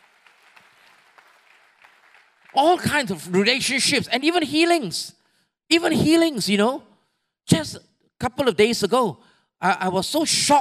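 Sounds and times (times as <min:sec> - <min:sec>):
audience clapping: 0:00.0 - 0:03.4
speech: 0:02.5 - 0:06.9, 0:07.5 - 0:10.5.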